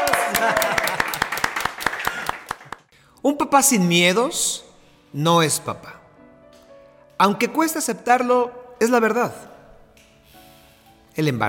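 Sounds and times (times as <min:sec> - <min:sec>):
laughter: 0:00.0 - 0:01.2
hand clapping: 0:00.0 - 0:02.9
speech: 0:03.2 - 0:06.0, 0:07.2 - 0:09.5, 0:11.2 - 0:11.4.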